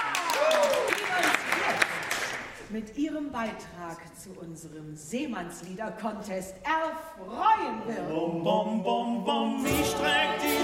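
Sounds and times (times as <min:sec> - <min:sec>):
warm applause welcoming a crew at a sea-shanty contest: 0:00.0 - 0:02.6
speech: 0:02.7 - 0:10.6.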